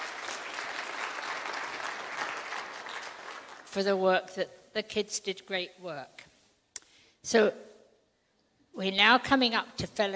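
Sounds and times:
round of applause: 0.0 - 3.8
speech: 3.7 - 6.3, 7.2 - 7.7, 8.8 - 10.1.

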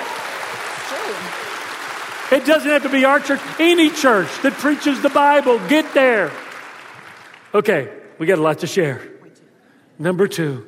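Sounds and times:
audience clapping: 0.0 - 7.8
speech: 0.9 - 1.6, 2.3 - 6.4, 7.5 - 9.1, 10.0 - 10.6.

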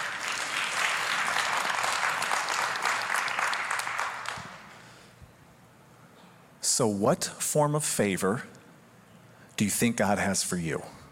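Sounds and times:
audience clapping: 0.0 - 4.8
speech: 6.8 - 8.6, 9.6 - 11.0.

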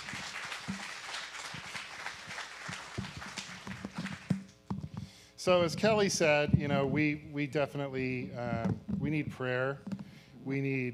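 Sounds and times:
audience applause: 0.0 - 4.5
speech: 5.4 - 10.9.

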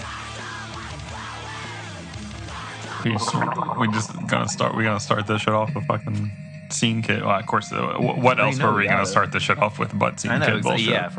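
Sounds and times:
speech: 3.0 - 11.1
person gargling a mouthful of honey: 3.1 - 4.9.

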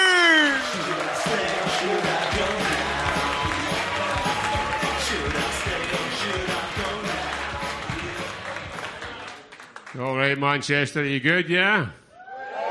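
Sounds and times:
large audience cheering and shouting: 0.0 - 9.2
large audience clapping: 0.0 - 10.7
speech: 10.0 - 12.0.

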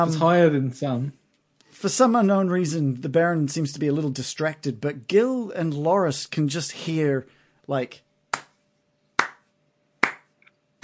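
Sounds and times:
speech: 0.0 - 1.2, 1.8 - 8.0
sharp hands clapping: 8.3 - 8.6, 9.2 - 10.8.

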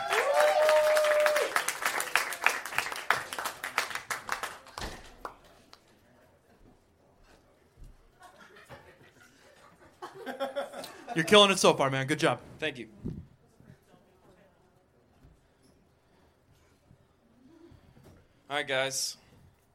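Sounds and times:
audience applause and cheering at a stand-up comedy show: 0.0 - 4.8
audience laughing: 8.1 - 11.5
speech: 11.2 - 13.2, 18.6 - 19.2.

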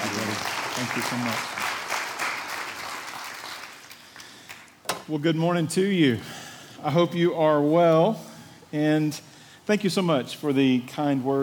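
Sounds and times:
audience applause welcoming a speaker: 0.0 - 4.7
speech: 0.8 - 1.7, 5.1 - 11.4.

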